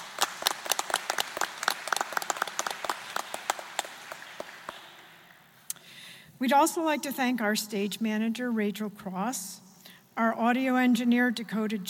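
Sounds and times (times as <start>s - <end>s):
audience applauding the teachers at the end of an event: 0.0s - 5.6s
speech: 6.4s - 9.6s, 10.2s - 11.8s.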